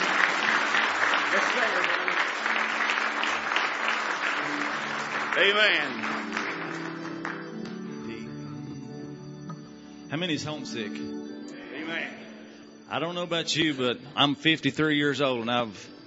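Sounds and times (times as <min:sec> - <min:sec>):
audience clapping: 0:00.0 - 0:08.4
speech: 0:01.4 - 0:02.0, 0:05.4 - 0:06.2, 0:10.1 - 0:11.2, 0:12.9 - 0:16.0.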